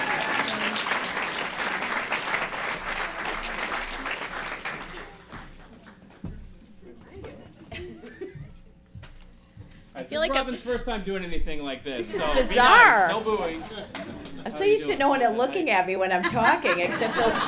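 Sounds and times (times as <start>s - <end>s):
audience clapping: 0.0s - 6.3s, 12.2s - 14.4s
laughter: 7.6s - 8.8s, 12.0s - 14.4s, 16.1s - 17.4s
speech: 10.1s - 17.4s.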